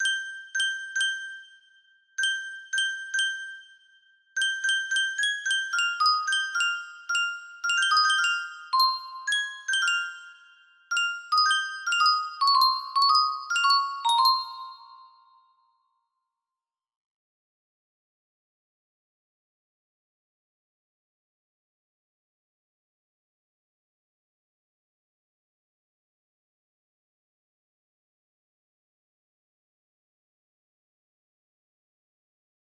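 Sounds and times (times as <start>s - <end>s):
music box melody: 0.0s - 15.8s.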